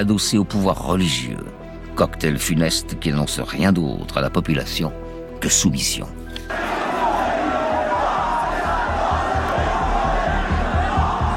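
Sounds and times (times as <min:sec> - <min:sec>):
speech: 0:00.0 - 0:06.8
huge crowd cheering: 0:06.5 - 0:11.3
rhythmic chanting or clapping: 0:06.5 - 0:11.3.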